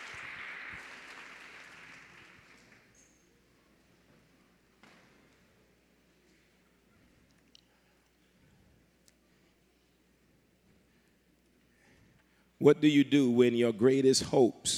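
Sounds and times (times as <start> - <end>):
people giving a hand clap of praise: 0.0 - 3.3
speech: 12.6 - 14.7.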